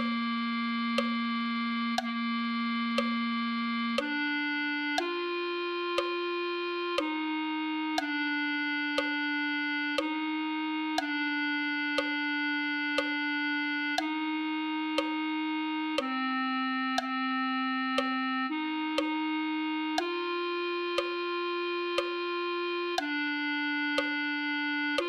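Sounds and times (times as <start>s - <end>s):
clarinet: 0.0s - 25.0s.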